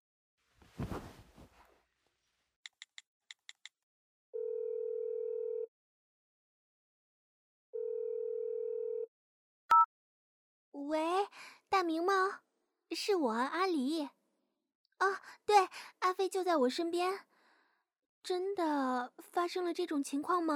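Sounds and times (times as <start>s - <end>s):
telephone handset rustling: 0.7s - 1.6s
long steady telephone tones: 4.4s - 5.7s, 7.8s - 9.1s
speech: 10.9s - 14.2s, 15.0s - 17.3s, 18.2s - 20.5s.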